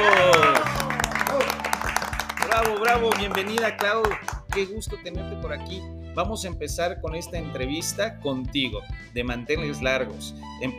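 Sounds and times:
audience applause: 0:00.0 - 0:04.6
speech: 0:02.9 - 0:10.7.

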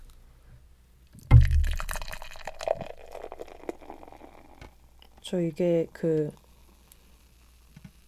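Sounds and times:
beer pouring into a glass: 0:01.3 - 0:06.8
speech: 0:05.3 - 0:06.4.

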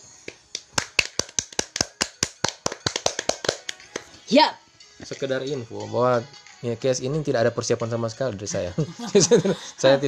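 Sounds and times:
hands clapping in applause: 0:00.2 - 0:04.2
speech: 0:04.3 - 0:10.0
laughter: 0:08.6 - 0:10.0.

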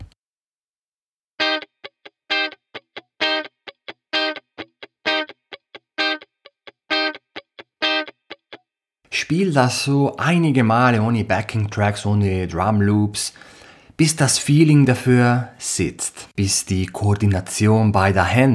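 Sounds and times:
distorted electric guitar chord struck on beat one, strings muted: 0:01.4 - 0:08.6
speech: 0:09.2 - 0:18.5.

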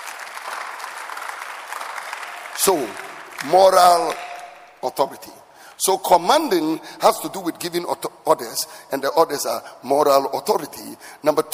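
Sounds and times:
audience clapping hands: 0:00.0 - 0:04.8
speech: 0:02.6 - 0:04.2, 0:04.8 - 0:11.5.

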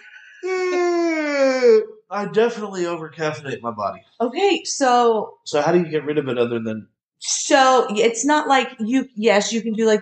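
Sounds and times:
yawn: 0:00.0 - 0:02.0
speech: 0:01.8 - 0:10.0.

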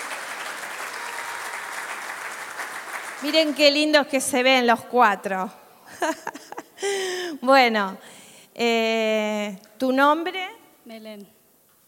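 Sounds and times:
audience applause: 0:00.0 - 0:03.7
speech: 0:03.2 - 0:11.4
laughter: 0:05.9 - 0:07.0.

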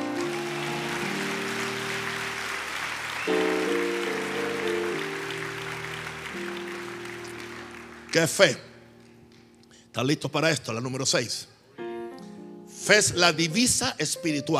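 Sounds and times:
audience applause: 0:00.0 - 0:08.6
speech: 0:08.2 - 0:08.7, 0:10.0 - 0:11.6, 0:12.8 - 0:14.5.

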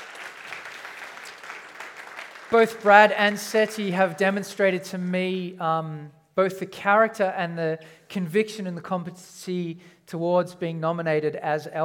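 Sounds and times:
audience applause: 0:00.0 - 0:03.8
speech: 0:02.5 - 0:11.8.

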